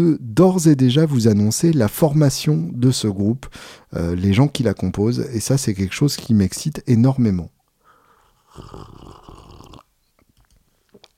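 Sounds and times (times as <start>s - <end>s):
speech: 0.0s - 7.6s, 8.6s - 9.0s
person sipping hot tea: 8.3s - 9.9s.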